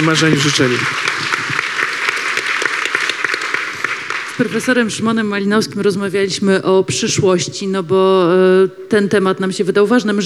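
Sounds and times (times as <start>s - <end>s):
speech: 0.0s - 1.3s, 4.4s - 10.2s
audience applause: 0.0s - 5.4s.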